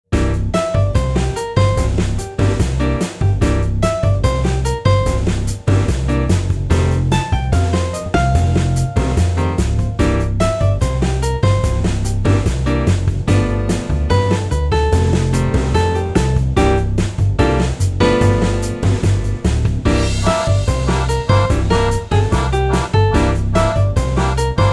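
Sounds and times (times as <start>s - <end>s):
blues music: 0.1s - 24.7s.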